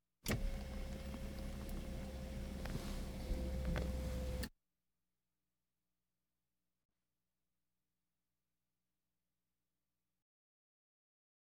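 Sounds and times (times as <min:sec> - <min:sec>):
various automobiles: 0:00.3 - 0:04.5.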